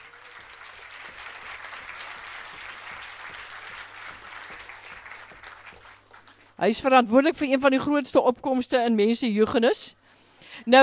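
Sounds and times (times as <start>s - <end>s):
audience applause: 0.0s - 6.6s
speech: 6.6s - 10.0s, 10.6s - 10.8s.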